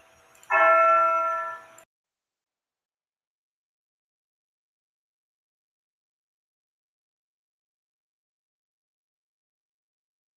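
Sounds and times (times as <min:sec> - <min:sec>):
clock chiming while being removed: 0:00.0 - 0:01.8.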